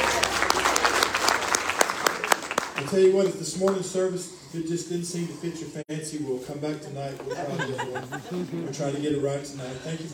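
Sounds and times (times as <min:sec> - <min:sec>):
laughter: 0:00.0 - 0:02.6, 0:07.2 - 0:10.1
audience applause: 0:00.0 - 0:03.0
speech: 0:02.9 - 0:10.1.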